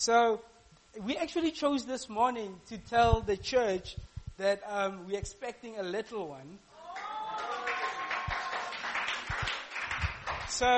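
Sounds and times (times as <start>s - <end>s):
speech: 0.0s - 6.7s, 10.5s - 10.7s
audience clapping hands: 6.9s - 10.7s.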